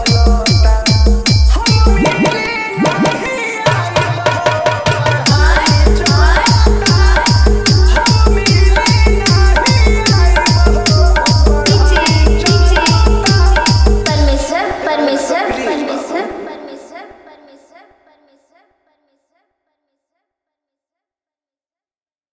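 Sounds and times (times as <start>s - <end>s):
Bhojpuri DJ remix songs with full bass: 0.0s - 16.9s.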